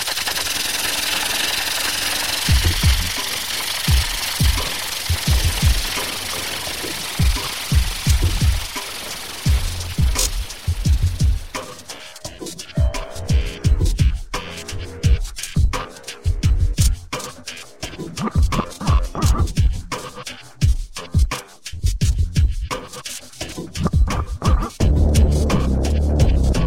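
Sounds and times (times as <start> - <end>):
wobbledelic crunktronica electronic music: 0.1 - 26.6.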